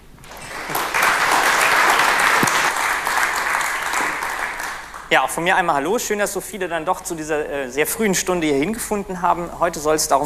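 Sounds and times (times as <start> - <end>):
audience applause: 0.2 - 5.1
speech: 5.1 - 10.2.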